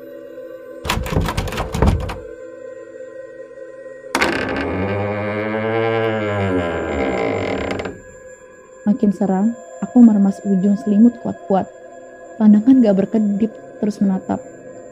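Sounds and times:
door latch clunking and rattling: 0.9s - 2.4s, 4.2s - 8.2s
speech: 9.0s - 11.8s, 12.4s - 14.5s.

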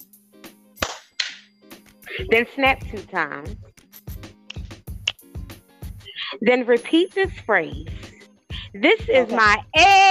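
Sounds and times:
hand claps: 0.8s - 1.5s, 4.4s - 5.3s
speech: 2.2s - 3.8s, 6.4s - 8.0s, 8.7s - 10.0s.

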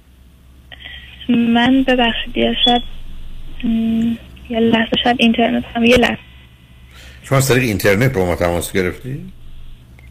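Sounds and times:
steady low hum on a phone line: 0.0s - 10.0s
speech: 1.3s - 3.0s, 3.6s - 6.3s, 7.2s - 9.4s.

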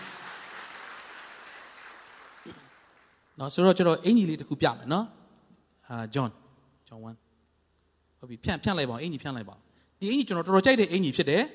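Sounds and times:
congregation clapping hands in praise of Jesus during a church service: 0.0s - 3.6s
speech: 3.4s - 5.2s, 5.9s - 7.2s, 8.2s - 11.5s.

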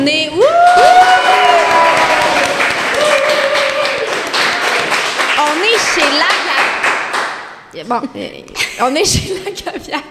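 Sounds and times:
live audience applause at a new factory venue: 0.6s - 7.4s
speech: 7.8s - 10.0s.

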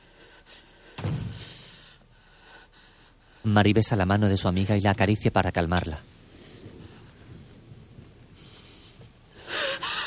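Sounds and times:
door: 1.0s - 1.4s
speech: 3.5s - 6.1s.

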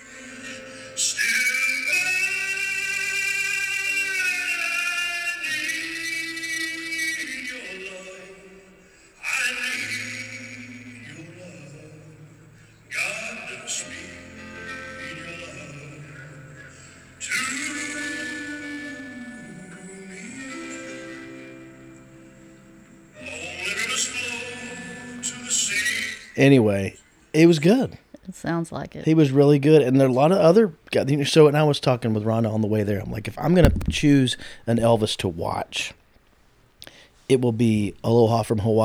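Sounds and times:
recorded piano playing through a phone held to a microphone: 0.0s - 26.4s, 32.5s - 35.2s
speech: 26.4s - 36.0s, 37.3s - 38.8s.

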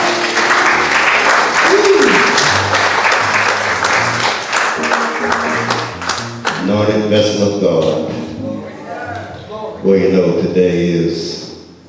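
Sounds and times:
audience hand clapping: 0.0s - 8.1s
speech: 6.8s - 8.2s, 9.8s - 11.4s.

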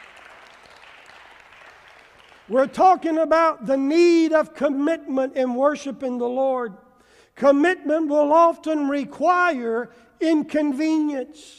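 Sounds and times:
crowd clapping hands: 0.0s - 2.6s
speech: 2.5s - 6.8s, 7.4s - 11.5s.

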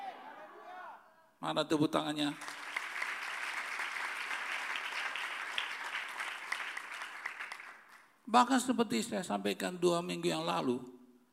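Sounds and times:
speech: 1.4s - 2.5s, 8.3s - 11.0s
audience applause: 2.4s - 8.0s.

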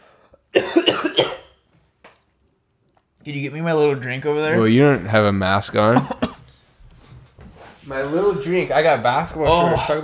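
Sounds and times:
person coughing in a choking fit: 0.5s - 1.6s, 6.0s - 6.4s, 9.5s - 10.0s
speech: 3.3s - 6.2s, 7.9s - 10.0s.

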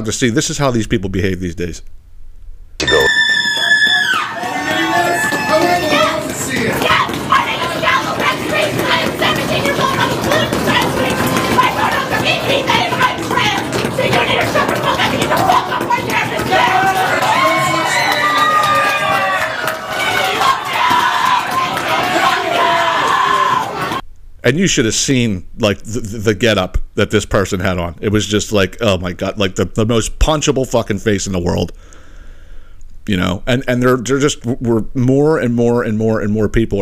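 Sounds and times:
speech: 0.0s - 2.0s, 24.4s - 32.0s, 33.0s - 36.7s
piercing shriek: 2.8s - 5.7s
crowd screaming and shouting: 2.8s - 24.0s.

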